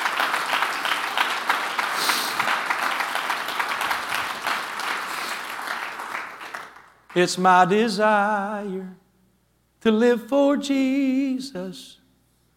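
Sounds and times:
audience clapping hands: 0.0 - 7.4
speech: 7.1 - 9.0, 9.8 - 12.0.

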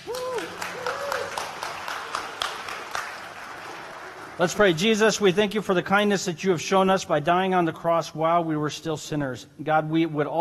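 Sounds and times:
cheers and whoops: 0.0 - 2.6
audience applause: 0.0 - 4.8
speech: 4.4 - 10.3.

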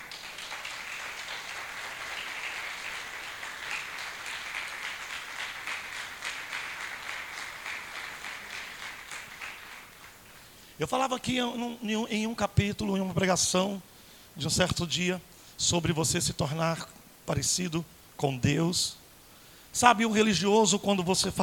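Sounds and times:
audience applause: 0.0 - 10.4
speech: 10.8 - 19.0, 19.7 - 21.4.

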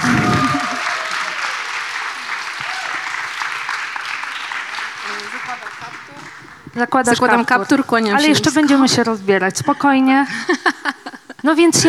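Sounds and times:
audience applause: 0.0 - 9.0
laughter: 0.0 - 11.8
speech: 6.8 - 11.8.

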